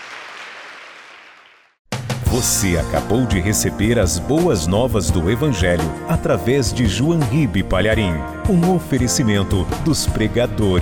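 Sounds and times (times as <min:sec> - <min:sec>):
crowd applause: 0:00.0 - 0:01.7
speech: 0:02.3 - 0:10.7.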